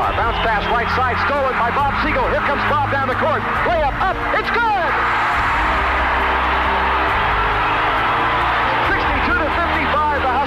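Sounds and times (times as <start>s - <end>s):
basketball arena crowd cheering: 0.0s - 10.4s
speech: 0.3s - 5.3s.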